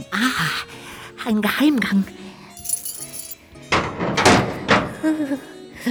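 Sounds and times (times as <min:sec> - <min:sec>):
speech: 0:00.2 - 0:02.2, 0:05.1 - 0:05.8
bunch of keys jangling: 0:02.6 - 0:05.1
heavy iron door swinging open: 0:03.7 - 0:05.2.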